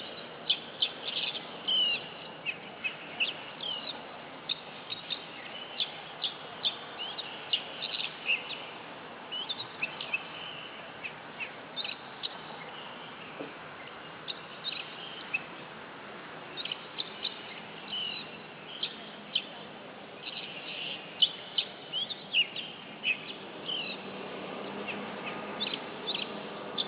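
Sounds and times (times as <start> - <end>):
Oriental magpie-robin giving bright chirps and whistled notes: 0.5 - 8.7, 9.3 - 12.9, 14.3 - 15.5, 16.6 - 19.5, 20.2 - 24.0, 24.8 - 26.8.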